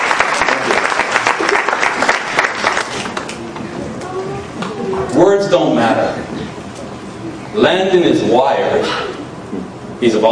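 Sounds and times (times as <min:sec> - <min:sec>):
audience applause: 0:00.0 - 0:03.4
speech: 0:05.2 - 0:06.3, 0:07.6 - 0:09.1, 0:10.0 - 0:10.3.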